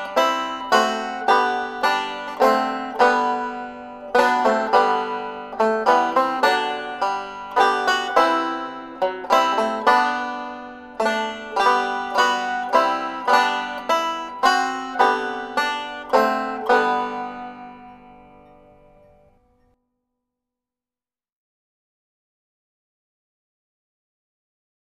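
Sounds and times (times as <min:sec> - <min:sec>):
banjo: 0:00.0 - 0:19.7.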